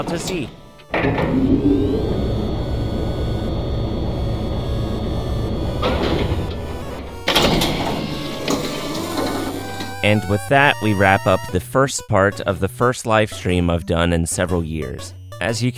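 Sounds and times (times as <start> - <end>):
speech: 0.0 - 2.2, 10.0 - 15.7
rising high tone: 0.6 - 11.6, 14.4 - 15.7
video game elevator door sliding with mechanical hum: 0.8 - 10.3.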